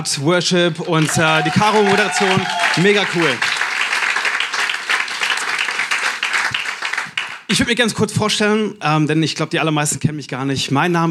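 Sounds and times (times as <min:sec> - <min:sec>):
speech: 0:00.0 - 0:03.6, 0:07.5 - 0:11.0
audience applause: 0:00.8 - 0:07.5.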